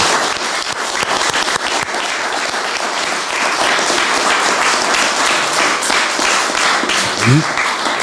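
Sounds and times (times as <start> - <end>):
audience applause: 0.0 - 8.0
person speaking: 7.0 - 7.6.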